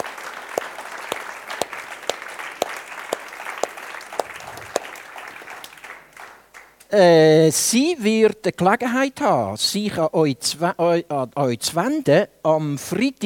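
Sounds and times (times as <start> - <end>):
audience applause: 0.0 - 6.8
speech: 6.9 - 13.2.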